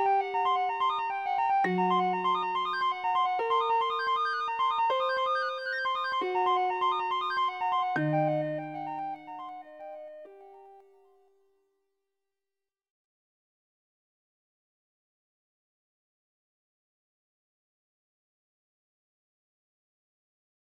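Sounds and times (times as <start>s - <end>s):
sevens with blues notes: 0.0s - 10.6s.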